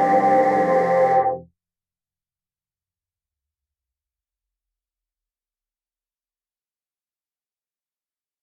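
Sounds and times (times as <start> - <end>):
ultra analog virtual analog synthesizer: 0.0 - 1.5.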